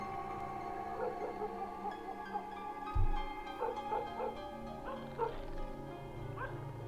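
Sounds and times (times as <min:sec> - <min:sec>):
hum: 0:00.0 - 0:06.8
dog barking outside: 0:01.0 - 0:01.6, 0:03.6 - 0:05.5, 0:06.4 - 0:06.6
low thump: 0:02.9 - 0:03.4.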